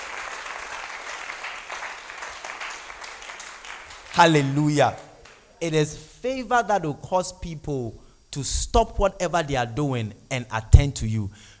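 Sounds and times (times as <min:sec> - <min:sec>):
crowd clapping: 0:00.0 - 0:05.6
speech: 0:04.2 - 0:05.0, 0:05.6 - 0:11.5.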